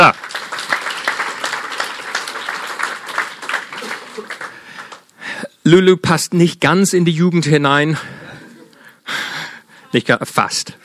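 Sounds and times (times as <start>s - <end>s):
audience applause: 0.0s - 5.1s
speech: 5.7s - 8.2s, 9.9s - 10.8s.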